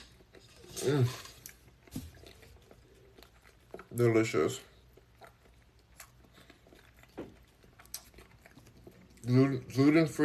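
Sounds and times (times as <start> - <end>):
chewing food while eating: 0.0 - 10.2
speech: 0.8 - 1.3, 4.0 - 4.7, 9.3 - 10.2.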